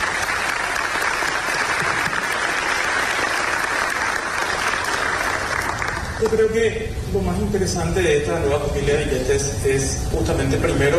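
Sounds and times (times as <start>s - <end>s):
audience applause: 0.0s - 6.4s
speech: 6.2s - 10.9s.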